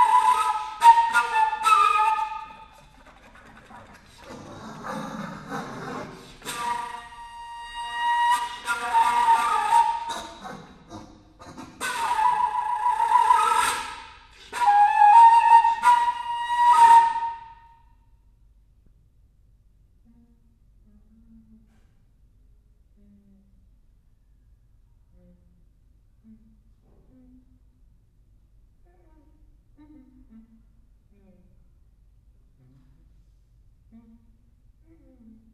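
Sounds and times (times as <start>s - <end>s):
alto flute: 0.0s - 2.9s, 6.4s - 10.8s, 11.5s - 17.8s.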